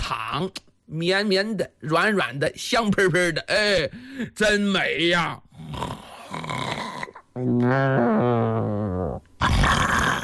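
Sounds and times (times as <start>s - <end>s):
speech: 0.1s - 5.9s, 7.4s - 10.0s
voice imitating a loud snore: 5.5s - 10.2s.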